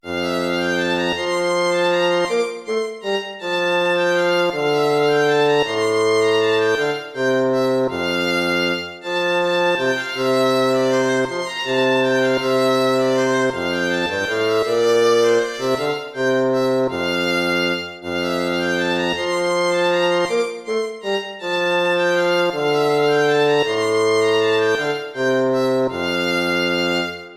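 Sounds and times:
lute piece: 0.0 - 27.3.

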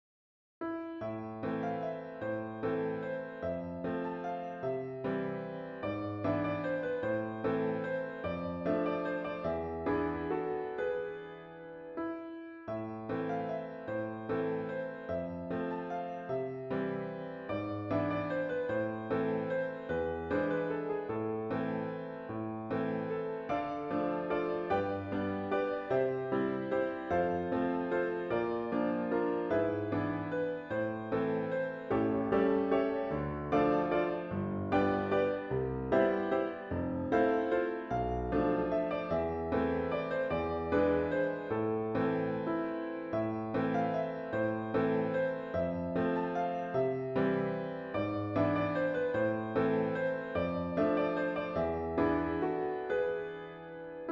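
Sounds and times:
waltz music: 0.7 - 54.1.

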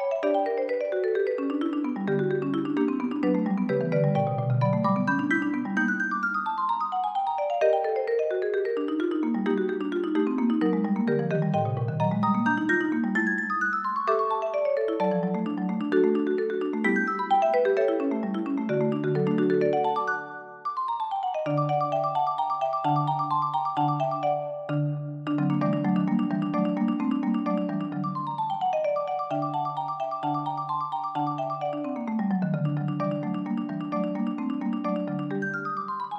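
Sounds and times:
marimba duet etude: 0.1 - 6.4, 7.2 - 36.1.

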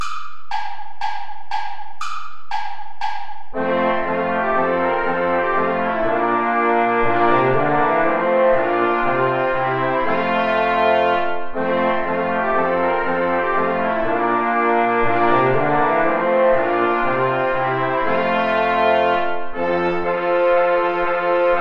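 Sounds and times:
play-along backing music without trombone: 0.0 - 21.5.

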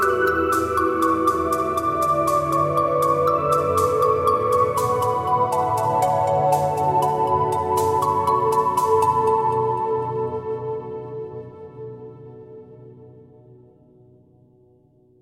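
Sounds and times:
deep trance music mix: 0.0 - 11.6.

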